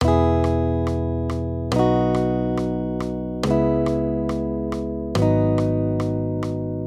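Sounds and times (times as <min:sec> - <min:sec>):
major triads: 0:00.0 - 0:06.8.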